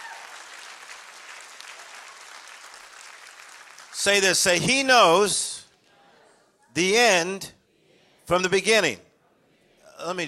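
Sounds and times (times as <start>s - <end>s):
audience clapping: 0.0s - 4.7s
speech: 4.0s - 5.6s, 6.8s - 7.6s, 8.3s - 9.0s, 10.0s - 10.2s.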